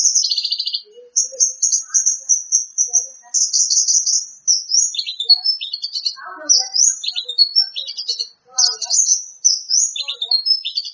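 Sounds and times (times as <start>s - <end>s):
Greater green leafbird song: 0.0s - 10.9s.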